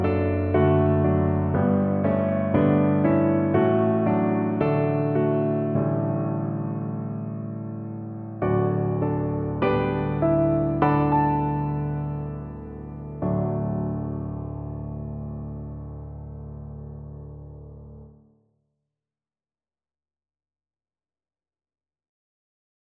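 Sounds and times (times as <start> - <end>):
accompaniment in D: 0.0 - 13.6.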